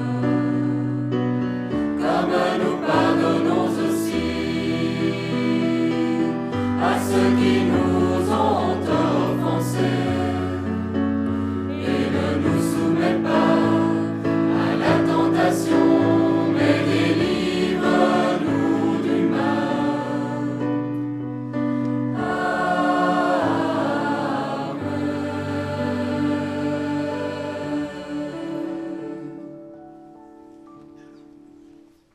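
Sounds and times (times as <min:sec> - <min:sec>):
schola choir singing: 0:00.0 - 0:21.2, 0:21.9 - 0:29.9.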